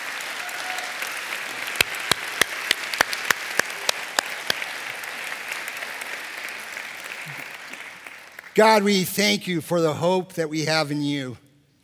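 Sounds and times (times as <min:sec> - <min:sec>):
audience clapping: 0:00.0 - 0:09.3
speech: 0:08.6 - 0:11.4.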